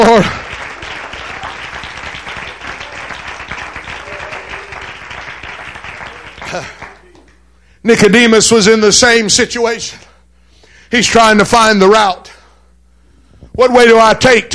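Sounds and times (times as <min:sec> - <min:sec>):
speech: 0:00.0 - 0:00.4, 0:07.9 - 0:10.0, 0:10.9 - 0:12.2, 0:13.6 - 0:14.5
audience clapping hands: 0:00.0 - 0:07.4.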